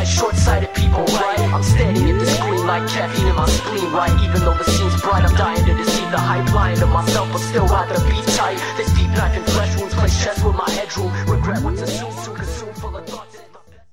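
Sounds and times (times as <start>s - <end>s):
hip hop rap music: 0.0s - 13.8s.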